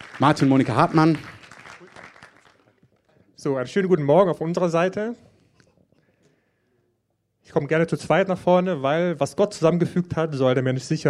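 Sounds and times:
audience clapping: 0.0 - 3.2
speech: 0.2 - 1.4, 3.4 - 5.3, 7.5 - 11.0.

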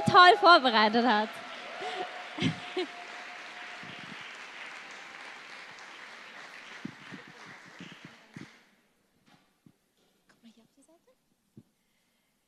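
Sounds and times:
audience applause: 0.0 - 8.6
murmuring voices: 0.0 - 8.6
speech: 0.1 - 1.4
laughter: 1.1 - 5.8, 6.5 - 8.4.

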